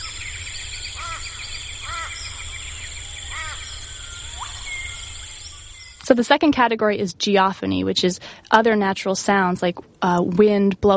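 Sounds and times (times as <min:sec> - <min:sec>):
outdoor chorus of birds: 0:00.0 - 0:06.0
speech: 0:06.1 - 0:10.9.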